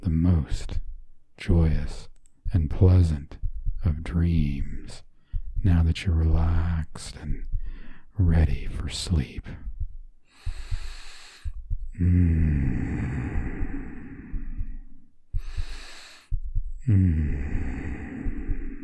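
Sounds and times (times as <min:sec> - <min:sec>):
gentle heartbeat: 0:00.0 - 0:18.8
speech: 0:00.4 - 0:00.8, 0:01.4 - 0:07.6, 0:08.2 - 0:09.7, 0:12.0 - 0:13.4, 0:16.9 - 0:17.5
person breathing: 0:04.9 - 0:05.6, 0:07.4 - 0:08.2, 0:10.2 - 0:18.8.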